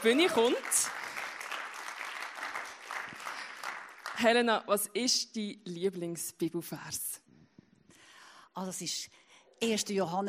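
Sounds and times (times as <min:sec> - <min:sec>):
speech: 0:00.0 - 0:01.0, 0:04.2 - 0:07.2, 0:08.6 - 0:10.2
audience clapping: 0:00.0 - 0:04.5.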